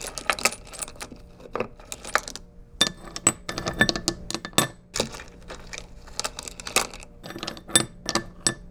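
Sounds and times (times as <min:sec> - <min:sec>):
candy bowl in a kitchen: 0:00.0 - 0:08.6.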